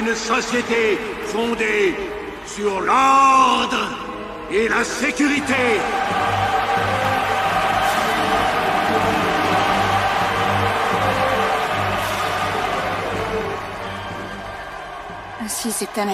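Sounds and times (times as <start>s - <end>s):
applause in a large assembly: 0.0s - 1.6s, 5.4s - 16.1s
speech: 0.0s - 6.2s, 15.6s - 16.1s.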